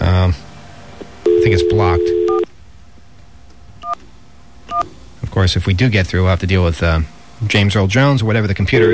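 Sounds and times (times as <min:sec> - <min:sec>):
telephone keypad tones from a Sprint PCS phone dialing 411: 0:01.3 - 0:02.5
speech: 0:01.5 - 0:02.2, 0:05.4 - 0:08.9.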